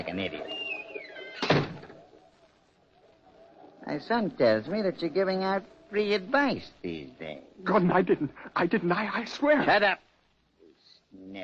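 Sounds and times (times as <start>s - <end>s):
speech: 0.1s - 0.6s, 3.9s - 10.1s, 11.1s - 11.4s
door being shut, radio drama sound effect: 1.2s - 2.0s.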